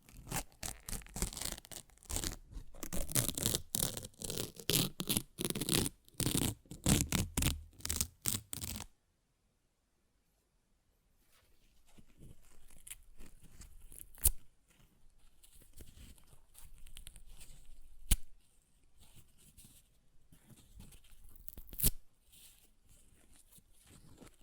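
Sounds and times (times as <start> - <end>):
paper ripping: 0.0 - 8.9.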